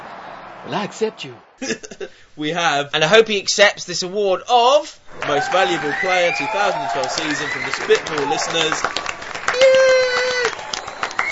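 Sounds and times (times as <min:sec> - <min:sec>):
rapturous applause: 0:00.0 - 0:01.4, 0:05.1 - 0:11.3
speech: 0:00.6 - 0:09.7.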